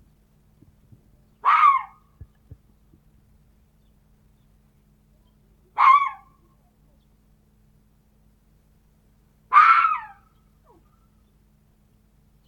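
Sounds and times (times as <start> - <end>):
red fox barking: 1.4 - 2.1, 5.8 - 6.4, 9.5 - 11.0.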